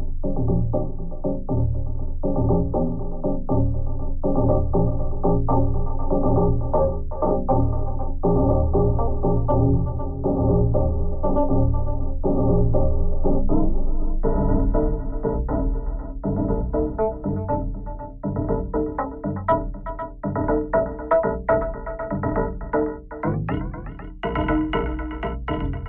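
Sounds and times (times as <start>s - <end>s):
delay groove: 0.3s - 25.8s.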